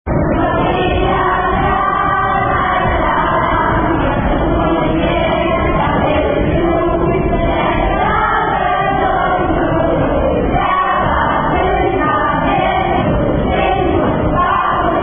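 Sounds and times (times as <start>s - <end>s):
song sung in Romanian in a church: 0.1s - 15.0s.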